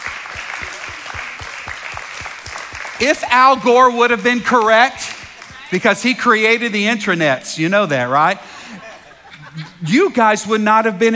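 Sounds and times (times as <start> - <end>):
audience clapping: 0.0 - 8.2
speech: 3.0 - 5.1, 5.7 - 8.5, 9.8 - 11.1
laughter: 8.2 - 10.2.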